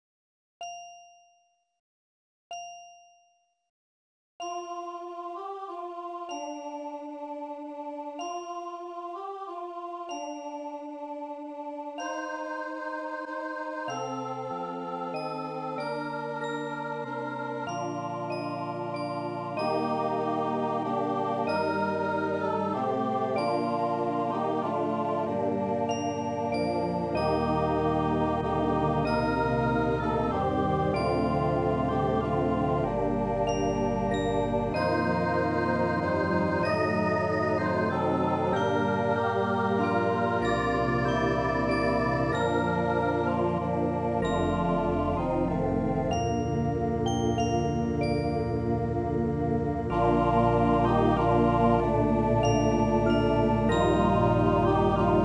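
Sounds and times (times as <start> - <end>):
SATB choir singing: 4.7 - 55.2
bells: 12.0 - 55.2
organ: 12.4 - 55.2.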